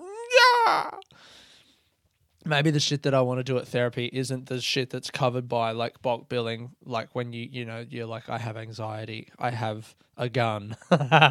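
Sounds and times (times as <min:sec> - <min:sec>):
person yawning: 0:00.0 - 0:01.1
speech: 0:00.7 - 0:01.4, 0:02.4 - 0:11.2.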